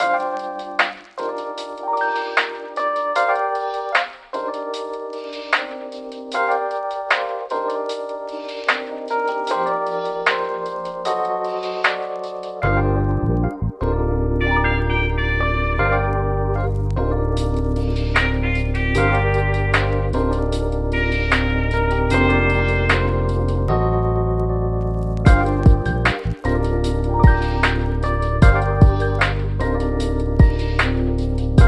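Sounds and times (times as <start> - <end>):
lofi music: 0.0 - 31.6.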